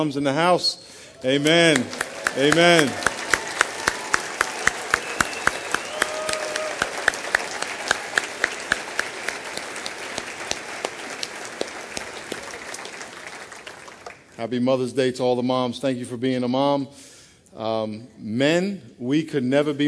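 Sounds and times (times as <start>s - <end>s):
speech: 0.0s - 3.1s, 14.4s - 19.8s
roomful of people applauding: 1.2s - 14.4s.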